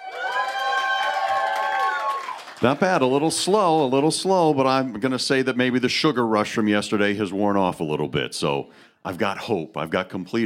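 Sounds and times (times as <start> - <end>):
live studio audience cheering and whooping: 0.0 - 3.2
speech: 2.6 - 10.4.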